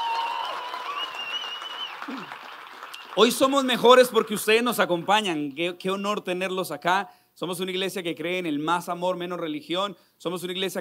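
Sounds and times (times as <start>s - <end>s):
church audience applause: 0.0s - 4.8s
speech: 2.1s - 2.4s, 3.2s - 10.7s.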